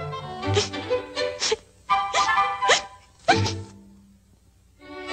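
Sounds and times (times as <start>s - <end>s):
person sneezing: 0.5s - 3.7s.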